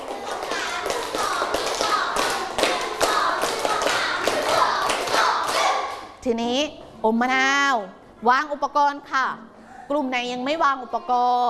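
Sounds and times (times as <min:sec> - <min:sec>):
group of students clapping in a stepped pattern: 0:00.0 - 0:06.1
speech: 0:06.2 - 0:11.4.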